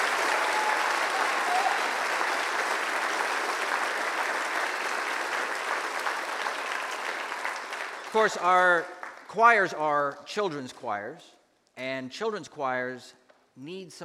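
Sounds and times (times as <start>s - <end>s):
audience applause: 0.0s - 9.3s
speech: 8.1s - 14.0s.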